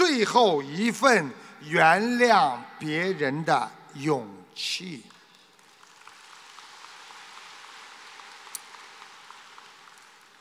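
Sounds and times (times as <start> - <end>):
speech: 0.2 - 5.1
audience applause: 5.4 - 10.4.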